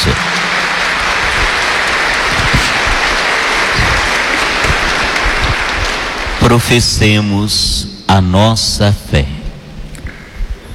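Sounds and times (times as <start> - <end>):
round of applause: 0.0 - 7.1
speech: 6.5 - 9.4.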